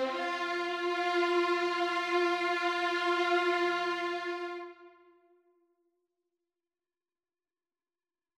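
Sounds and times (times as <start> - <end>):
second violin part: 0.0 - 4.9.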